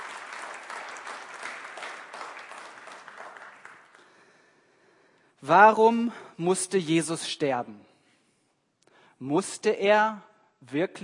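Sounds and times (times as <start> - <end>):
audience applause: 0.0 - 4.2
speech: 5.4 - 7.9, 9.2 - 11.0.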